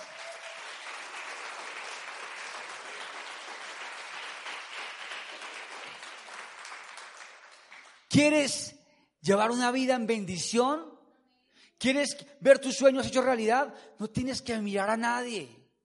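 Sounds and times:
audience applause: 0:00.0 - 0:08.1
speech: 0:08.1 - 0:10.9, 0:11.8 - 0:15.6.

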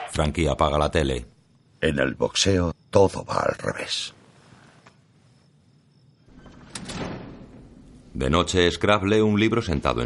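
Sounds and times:
speech: 0:00.1 - 0:04.2, 0:08.1 - 0:10.0
gym door scraping as it swings open: 0:06.3 - 0:07.7.

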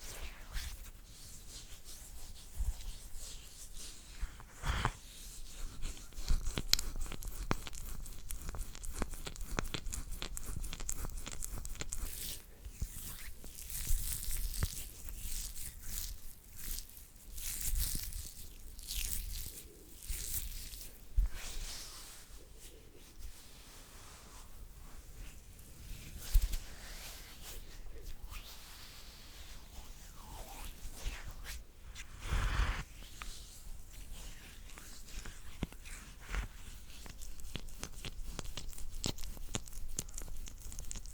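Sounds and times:
hands rubbing and scratching: 0:00.0 - 0:41.1.

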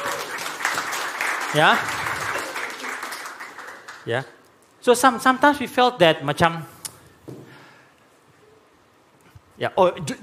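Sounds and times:
audience applause: 0:00.0 - 0:04.2
speech: 0:01.5 - 0:02.0, 0:04.0 - 0:07.4, 0:09.6 - 0:10.2.

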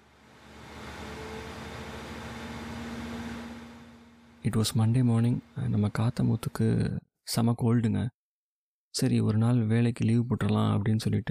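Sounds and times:
car engine as the vehicle sets off for the station: 0:00.0 - 0:06.4
speech: 0:04.4 - 0:08.2, 0:08.9 - 0:11.2.

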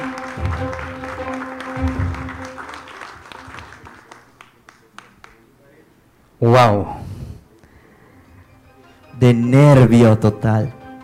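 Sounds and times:
audience applause: 0:00.0 - 0:05.4
speech: 0:06.4 - 0:07.0, 0:09.2 - 0:10.8.

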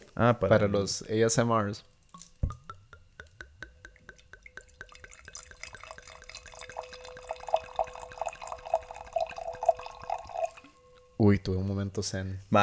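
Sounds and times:
speech: 0:00.2 - 0:02.0, 0:11.3 - 0:12.6
liquid pouring into a glass: 0:02.2 - 0:11.1.

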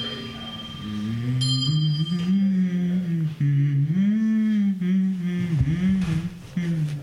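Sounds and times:
faint constant high tone: 0:00.0 - 0:04.2
person humming a Christmas pop melody: 0:00.8 - 0:07.0.

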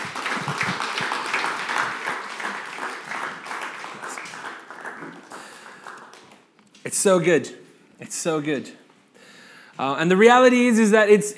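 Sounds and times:
audience applause: 0:00.0 - 0:06.5
speech: 0:06.9 - 0:08.8, 0:09.8 - 0:11.3.

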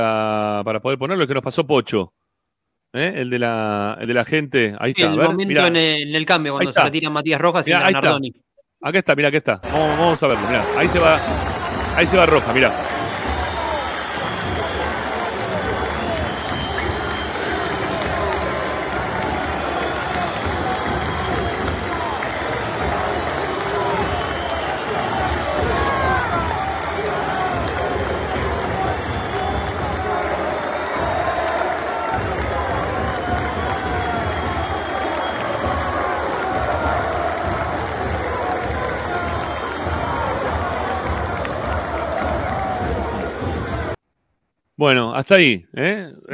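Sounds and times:
speech: 0:00.0 - 0:02.2, 0:02.9 - 0:12.9, 0:45.2 - 0:46.3
stadium crowd clapping: 0:05.0 - 0:05.8, 0:09.6 - 0:44.0.

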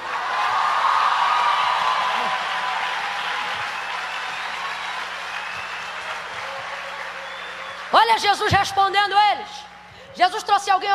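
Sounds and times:
audience applauding together: 0:00.0 - 0:08.5
speech: 0:08.2 - 0:10.9.

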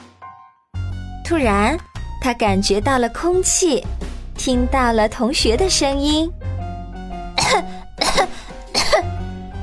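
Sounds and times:
speech: 0:01.3 - 0:06.4, 0:07.5 - 0:07.8
coughing after choking on water: 0:07.4 - 0:09.2.

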